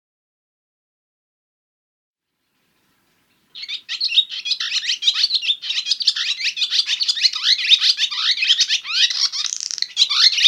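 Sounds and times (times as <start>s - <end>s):
barn swallow twittering in Winnipeg: 2.8s - 10.4s.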